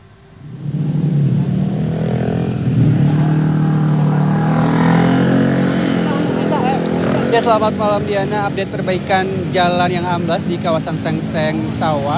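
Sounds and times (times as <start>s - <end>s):
road traffic with cars and motorcycles: 0.0s - 12.1s
speech: 7.4s - 12.1s.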